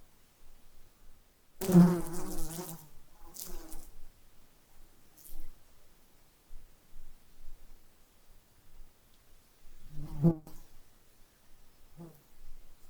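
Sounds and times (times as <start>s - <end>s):
fly wings buzzing: 1.6s - 3.9s.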